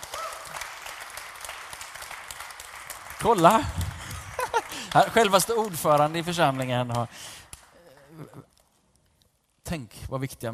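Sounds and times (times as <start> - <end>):
audience applause: 0.0 - 8.4
speech: 3.2 - 3.8, 4.9 - 7.4, 9.7 - 10.5
laughter: 4.0 - 5.3.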